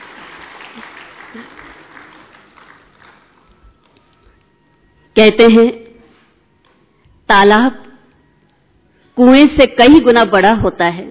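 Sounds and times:
audience applause: 0.0 - 4.0
speech: 0.8 - 1.7, 5.2 - 5.8, 7.3 - 7.8, 9.2 - 11.0.

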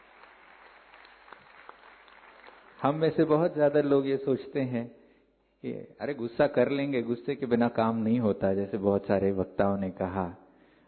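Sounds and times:
audience applause: 0.0 - 3.0
speech: 2.8 - 5.0, 5.6 - 10.4.

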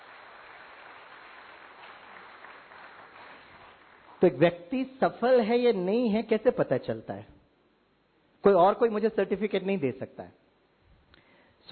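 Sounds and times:
audience clapping: 0.0 - 4.4
speech: 4.2 - 7.4, 8.4 - 10.4.

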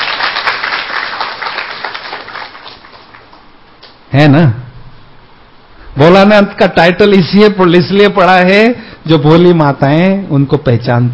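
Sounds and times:
audience applause: 0.0 - 3.4
speech: 4.1 - 4.6, 6.0 - 11.1.

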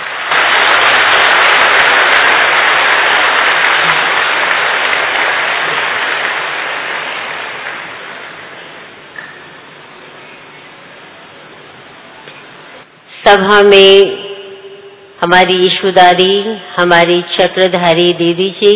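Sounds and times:
crowd applauding: 0.0 - 9.1
speech: 13.3 - 14.2, 15.2 - 18.7.

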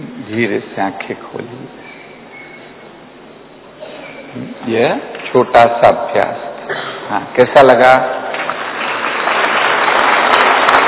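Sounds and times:
speech: 0.3 - 1.9, 4.4 - 8.2
crowd clapping: 8.1 - 10.8.

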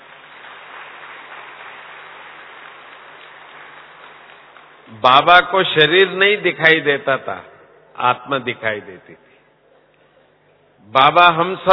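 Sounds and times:
crowd applause: 0.0 - 4.9
speech: 4.9 - 9.3, 10.8 - 11.7.

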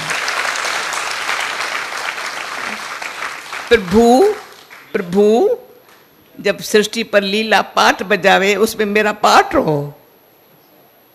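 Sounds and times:
audience clapping: 0.0 - 6.1
speech: 3.7 - 4.4, 5.0 - 5.6, 6.4 - 10.0.

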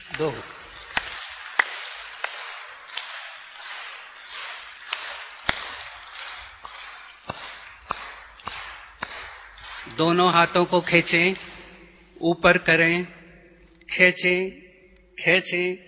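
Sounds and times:
hand claps: 0.1 - 9.9
speech: 0.2 - 0.6, 10.0 - 11.5, 12.2 - 13.2, 13.9 - 14.6, 15.2 - 15.8.

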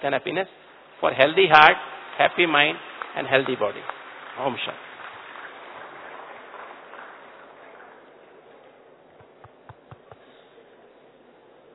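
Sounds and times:
speech: 0.0 - 4.9
audience applause: 1.7 - 8.5.

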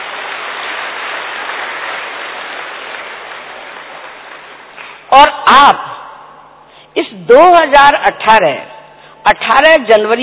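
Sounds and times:
audience applause: 0.0 - 5.1
speech: 5.2 - 6.0, 7.2 - 10.2.

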